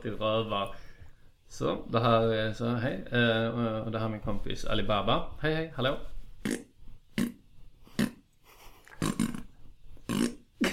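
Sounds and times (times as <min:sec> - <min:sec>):
speech: 0:00.0 - 0:00.9, 0:01.5 - 0:07.3
raspy farting noises: 0:06.4 - 0:08.3, 0:08.9 - 0:10.7.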